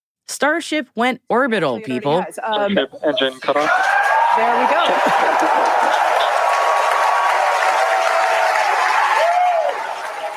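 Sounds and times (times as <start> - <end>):
speech: 0.3 - 6.2
laughter: 2.5 - 3.8, 4.4 - 6.6
large crowd cheering and applauding: 3.4 - 10.3.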